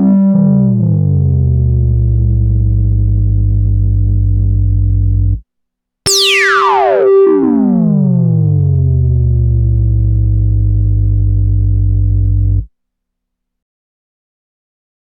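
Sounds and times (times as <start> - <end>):
bass synthesizer on the left channel: 0.0 - 5.4, 6.1 - 12.7.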